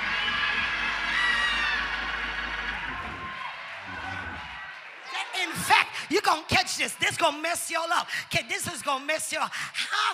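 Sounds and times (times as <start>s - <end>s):
large crowd screaming and hollering: 0.0s - 6.1s
speech: 6.3s - 10.1s.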